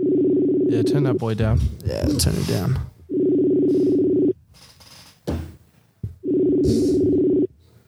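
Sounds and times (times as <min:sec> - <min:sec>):
outgoing call ringback tone: 0:00.0 - 0:01.0, 0:03.1 - 0:04.4, 0:06.2 - 0:07.5
speech: 0:00.7 - 0:02.9
clunk and rustling noise: 0:04.5 - 0:07.0.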